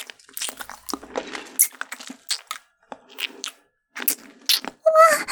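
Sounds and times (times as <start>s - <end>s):
ASMR kissing sounds: 4.0s - 5.2s.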